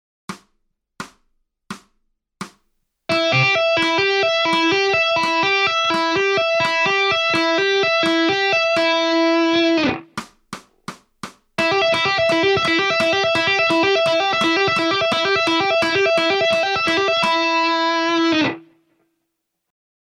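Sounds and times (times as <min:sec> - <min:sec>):
musical lick: 0:03.1 - 0:10.9, 0:11.6 - 0:18.8.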